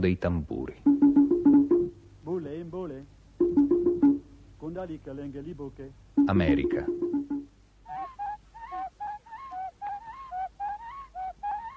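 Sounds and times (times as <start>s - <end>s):
speech: 0.0s - 0.8s, 2.7s - 3.2s, 4.7s - 7.4s
bird giving short honking calls: 0.8s - 2.1s, 3.4s - 4.5s, 6.2s - 11.7s.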